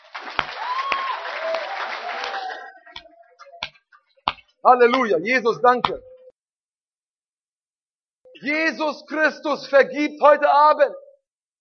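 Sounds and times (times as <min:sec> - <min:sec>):
audience applause: 0:00.0 - 0:03.0
speech: 0:04.6 - 0:06.1, 0:08.4 - 0:11.0.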